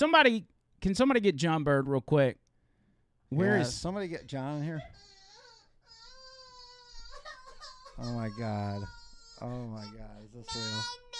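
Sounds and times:
speech: 0:00.0 - 0:02.4, 0:03.3 - 0:05.1, 0:08.0 - 0:11.0
adult imitating a scared baby crying: 0:04.5 - 0:11.1.

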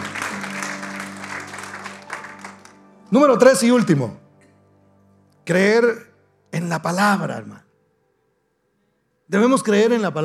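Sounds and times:
audience applause: 0:00.0 - 0:03.0
speech: 0:03.1 - 0:04.2, 0:05.5 - 0:07.6, 0:09.3 - 0:10.2.

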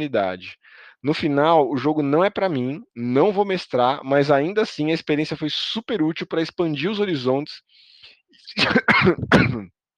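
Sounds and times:
speech: 0:00.0 - 0:09.8
person coughing and clearing throat after choking: 0:08.5 - 0:09.8.

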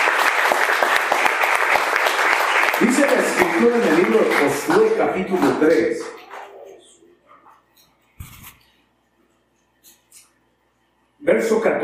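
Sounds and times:
audience applauding: 0:00.0 - 0:06.6
speech: 0:03.0 - 0:06.2, 0:11.4 - 0:11.8.

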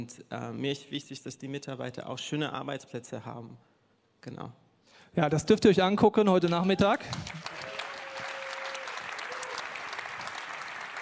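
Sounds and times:
speech: 0:00.0 - 0:07.5
audience applause: 0:06.8 - 0:11.0.

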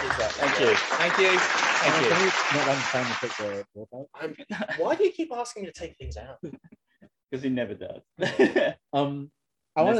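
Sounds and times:
applause sound effect from button box: 0:00.0 - 0:03.7
speech: 0:00.2 - 0:06.7, 0:07.3 - 0:09.9.

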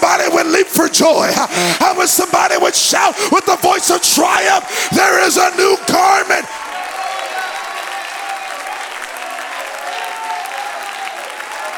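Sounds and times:
speech: 0:01.0 - 0:06.7
audience clapping: 0:05.7 - 0:11.7.

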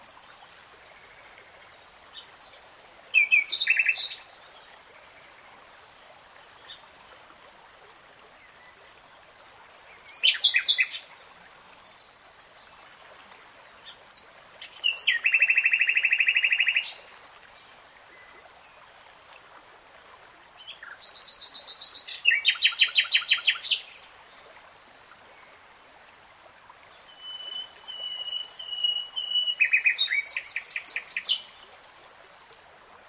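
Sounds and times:
nightingale song: 0:02.1 - 0:04.6, 0:06.6 - 0:11.1, 0:13.8 - 0:17.0, 0:20.6 - 0:24.0, 0:26.9 - 0:31.6.

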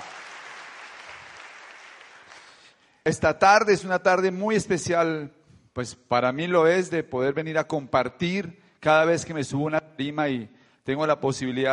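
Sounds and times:
applause from a sizable audience: 0:00.0 - 0:02.7
speech: 0:03.1 - 0:11.7.

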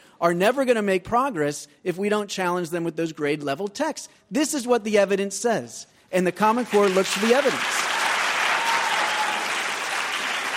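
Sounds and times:
speech: 0:00.2 - 0:07.8
audience applause: 0:06.7 - 0:10.5.

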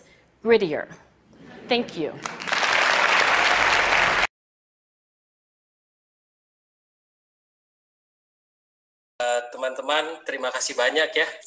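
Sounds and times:
speech: 0:00.4 - 0:01.0, 0:01.7 - 0:02.4, 0:09.9 - 0:11.4
audience applause: 0:02.2 - 0:04.3.

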